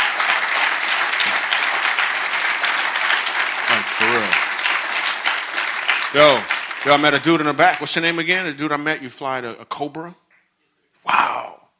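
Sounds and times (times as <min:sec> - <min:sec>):
audience applause: 0:00.0 - 0:08.5
speech: 0:06.1 - 0:10.2.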